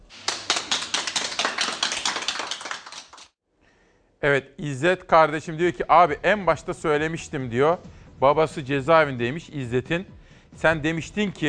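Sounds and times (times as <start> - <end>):
applause: 0.0 - 3.4
speech: 4.2 - 11.4.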